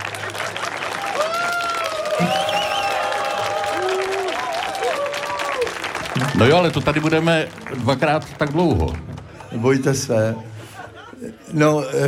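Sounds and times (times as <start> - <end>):
audience applause: 0.0 - 10.3
laughter: 2.0 - 2.9, 9.7 - 12.0
speech: 2.2 - 2.4, 6.4 - 10.5, 11.5 - 12.0.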